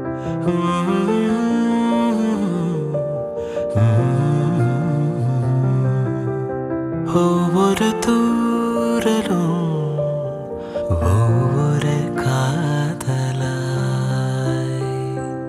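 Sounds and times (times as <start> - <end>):
background music ringtone: 0.1 - 15.4.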